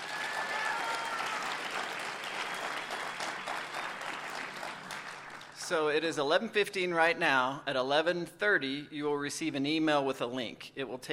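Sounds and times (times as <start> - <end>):
audience applause: 0.0 - 5.6
speech: 5.7 - 11.1.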